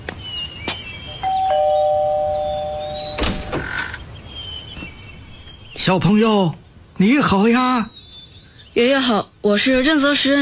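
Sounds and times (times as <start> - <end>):
doorbell ringing: 1.2 - 3.6
speech: 5.8 - 8.0, 8.8 - 10.4.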